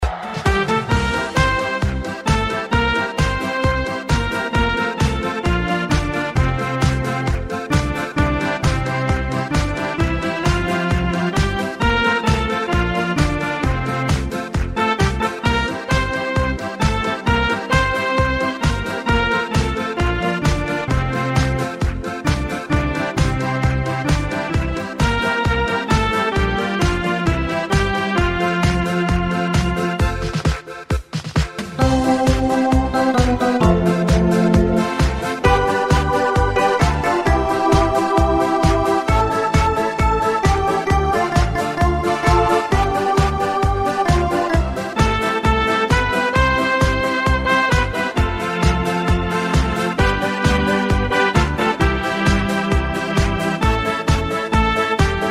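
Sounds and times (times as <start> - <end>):
beer music: 0.0 - 55.2.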